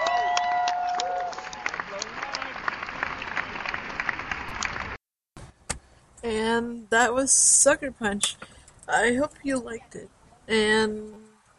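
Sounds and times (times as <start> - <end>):
audience applause: 0.0 - 5.0
speech: 6.6 - 11.2.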